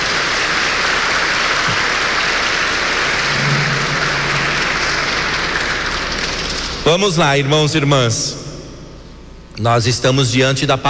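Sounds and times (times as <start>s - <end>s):
round of applause: 0.0s - 6.8s
speech: 6.9s - 8.4s, 9.6s - 10.8s.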